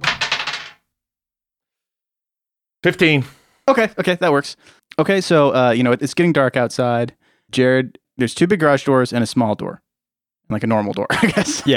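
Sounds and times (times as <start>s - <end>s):
twenty-sided die rolling: 0.0s - 0.8s
speech: 2.8s - 9.8s, 10.5s - 11.7s.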